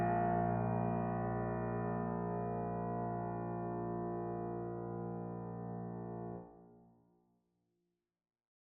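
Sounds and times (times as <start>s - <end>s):
software piano: 0.0s - 6.8s.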